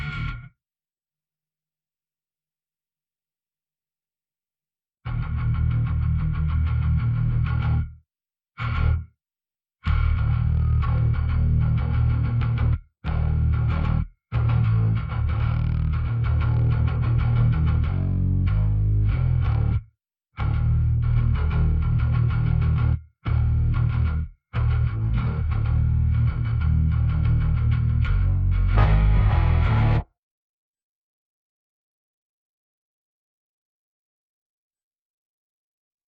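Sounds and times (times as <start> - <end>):
bass: 0.0 - 0.6, 5.1 - 8.0, 8.6 - 9.1, 9.8 - 30.1.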